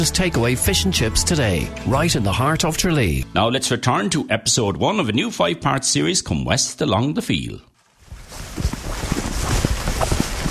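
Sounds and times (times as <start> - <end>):
speech: 0.0 - 7.7
footsteps of people walking down a path through a field: 7.8 - 10.4.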